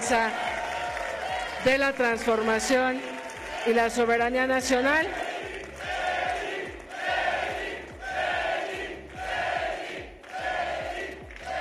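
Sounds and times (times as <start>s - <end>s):
speech: 0.1s - 0.5s, 1.6s - 5.2s
crowd shouting in unison at a political event: 4.6s - 11.6s.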